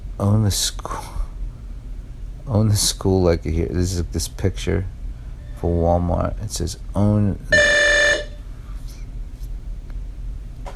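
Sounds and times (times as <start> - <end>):
low rumble: 0.0 - 10.7
speech: 0.2 - 1.2, 2.5 - 5.0, 5.6 - 7.7
door intercom buzzer: 7.5 - 8.4.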